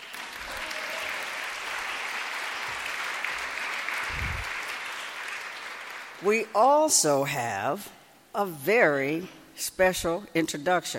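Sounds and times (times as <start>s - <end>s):
crowd applause: 0.0s - 6.2s
speech: 6.2s - 10.9s.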